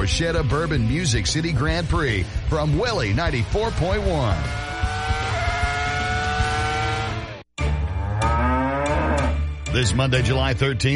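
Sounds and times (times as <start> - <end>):
speech: 0.1 - 4.7, 9.8 - 10.9
cow mooing: 4.2 - 9.4.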